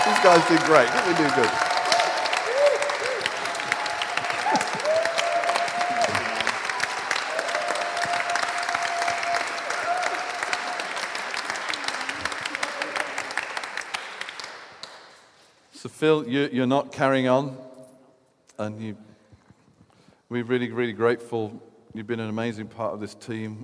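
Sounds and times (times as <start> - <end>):
whoops: 0.0 - 11.1
crowd applauding: 0.0 - 15.2
speech: 0.2 - 1.7, 16.0 - 17.6, 18.6 - 19.0, 20.3 - 23.6.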